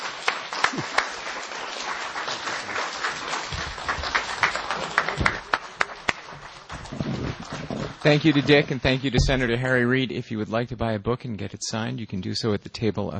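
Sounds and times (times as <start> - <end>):
audience applause: 0.0 - 9.7
speech: 8.0 - 13.1.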